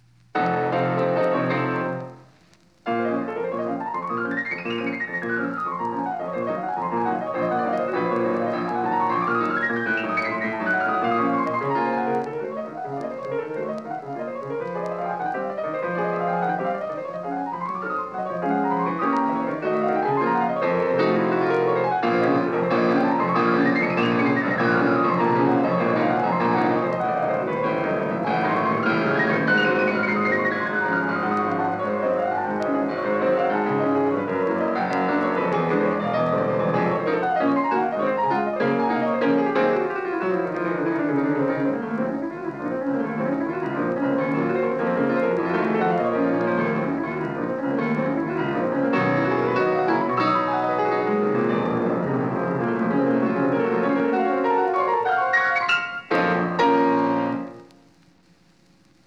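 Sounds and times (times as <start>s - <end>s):
prelude in B-flat minor: 0.0s - 58.0s.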